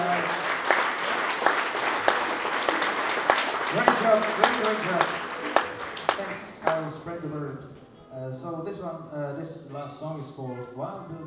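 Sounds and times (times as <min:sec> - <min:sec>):
audience applause: 0:00.0 - 0:08.0
laughter: 0:00.0 - 0:11.2
speech: 0:03.7 - 0:05.3, 0:06.2 - 0:11.2.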